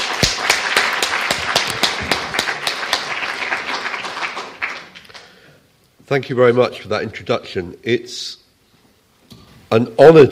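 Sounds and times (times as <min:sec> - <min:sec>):
audience applauding: 0:00.0 - 0:05.4
speech: 0:06.1 - 0:08.4, 0:09.7 - 0:10.3.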